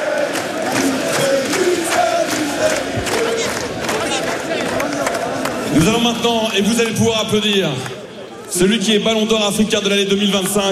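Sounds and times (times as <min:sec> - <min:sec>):
thousands of football supporters chanting: 0:00.0 - 0:05.9
speech: 0:05.8 - 0:07.9, 0:08.5 - 0:10.6.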